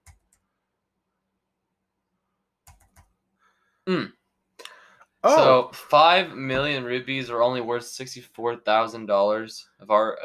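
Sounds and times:
quiet keystrokes on a computer keyboard: 2.6 - 3.1
short louder vocal sound: 3.9 - 4.1, 5.2 - 5.7
speech: 3.9 - 4.2, 5.2 - 10.2.

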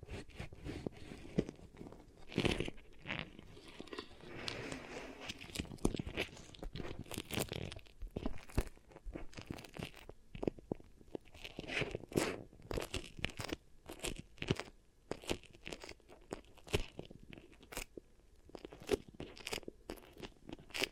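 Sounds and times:
soft rustling bed: 0.0 - 7.5
beeswax pressed and worked for ear triggers: 0.0 - 20.9.

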